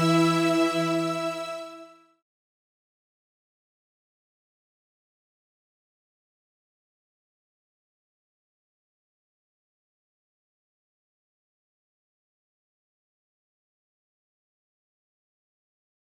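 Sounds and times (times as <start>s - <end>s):
strings: 0.0s - 2.0s.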